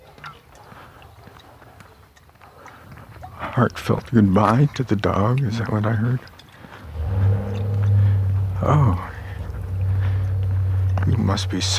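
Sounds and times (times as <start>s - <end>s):
speech: 3.6s - 6.3s, 8.6s - 9.1s, 11.3s - 11.7s
pickup truck engine starting up: 6.7s - 11.7s.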